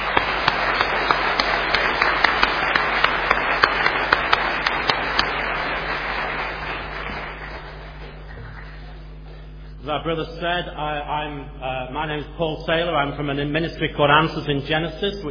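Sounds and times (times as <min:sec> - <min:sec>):
applause for young people: 0:00.0 - 0:09.5
speech: 0:09.9 - 0:15.2.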